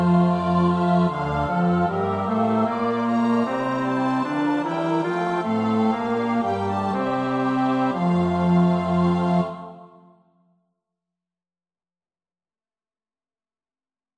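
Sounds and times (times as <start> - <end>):
bass choir part practice: 0.0 - 10.0.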